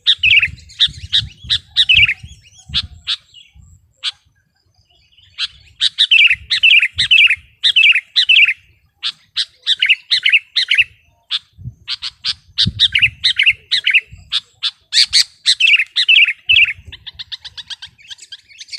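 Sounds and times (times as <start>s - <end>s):
Sooty-headed bulbul song: 0.0s - 18.7s.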